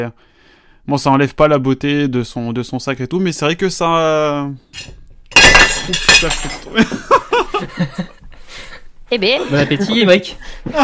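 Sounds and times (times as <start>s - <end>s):
speech: 0.0s - 8.2s, 9.1s - 10.8s
hitting a plate: 4.8s - 6.7s
laughter: 6.4s - 8.6s, 9.3s - 10.8s.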